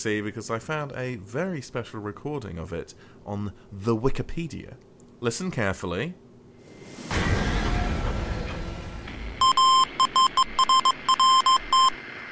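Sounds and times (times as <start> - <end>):
speech: 0.0 - 6.2
loud rushing noise: 6.6 - 12.3
Morse code beeps: 9.4 - 12.0.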